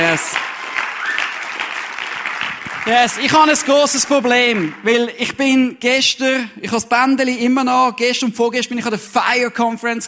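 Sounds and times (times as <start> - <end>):
audience applause: 0.0 - 5.3
speech: 2.9 - 10.0.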